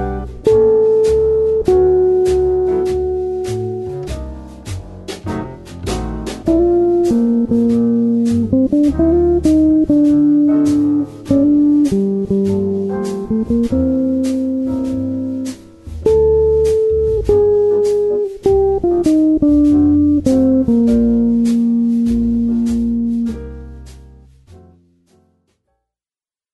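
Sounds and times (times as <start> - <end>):
chord melody guitar: 0.0 - 4.7, 6.4 - 23.4.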